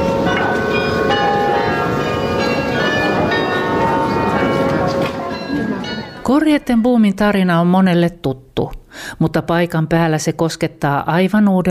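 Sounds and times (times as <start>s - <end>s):
Grote Kerk church bells ringing: 0.0s - 7.2s
speech: 6.4s - 11.6s.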